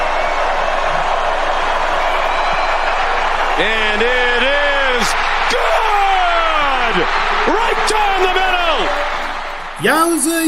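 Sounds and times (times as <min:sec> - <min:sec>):
stadium crowd oohing and aahing: 0:00.0 - 0:10.4
speech: 0:03.6 - 0:04.5, 0:07.0 - 0:09.2, 0:09.8 - 0:10.4.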